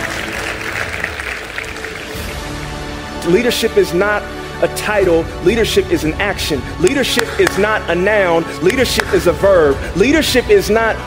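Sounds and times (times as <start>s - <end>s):
audience clapping: 0.0s - 3.0s, 7.1s - 7.7s, 8.6s - 9.2s
speech: 3.2s - 11.0s.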